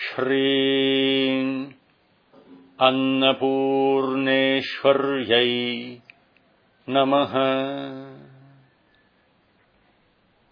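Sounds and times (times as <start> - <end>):
prayer chanting before eating: 0.0 - 1.8, 2.4 - 6.1, 6.8 - 8.8.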